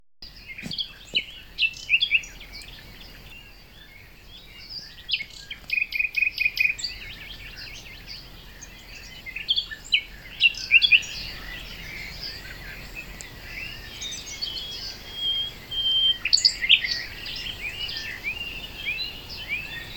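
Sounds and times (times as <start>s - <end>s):
nightingale singing: 0.2s - 19.9s.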